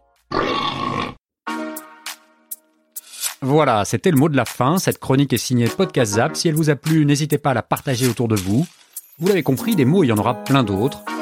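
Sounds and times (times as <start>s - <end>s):
pig-like grunting: 0.3s - 1.2s
speech: 3.4s - 11.1s.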